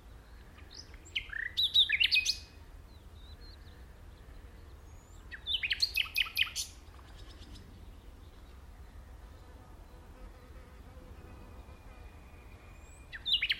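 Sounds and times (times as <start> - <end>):
common nightingale Luscinia megarhynchos singing whistles and trills: 0.0 - 8.6, 11.7 - 13.5.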